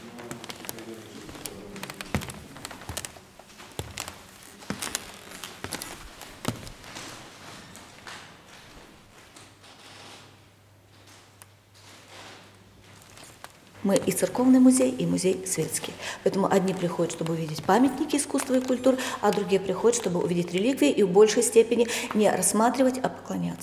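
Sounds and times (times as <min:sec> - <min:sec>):
wooden floor creaking in a museum in Kaunas: 0:00.0 - 0:10.4, 0:11.8 - 0:14.6, 0:16.6 - 0:20.2
speech: 0:13.9 - 0:23.6.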